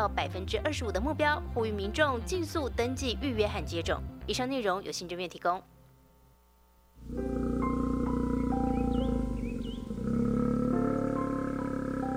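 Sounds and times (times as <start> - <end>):
speech: 0.0 - 5.7, 7.0 - 7.4
Taiwan black bear cub crying: 7.0 - 12.1.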